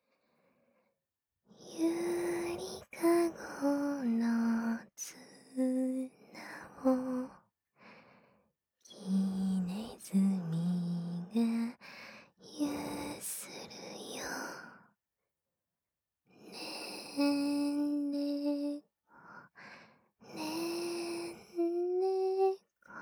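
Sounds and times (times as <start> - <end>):
lullaby singing: 1.7 - 7.4, 9.0 - 11.8, 16.8 - 18.8, 20.4 - 22.6.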